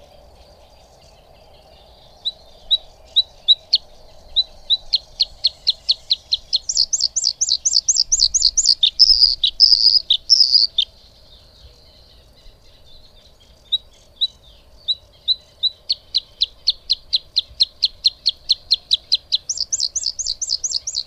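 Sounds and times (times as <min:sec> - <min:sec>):
bluethroat song of high ringing notes: 0:00.0 - 0:21.0.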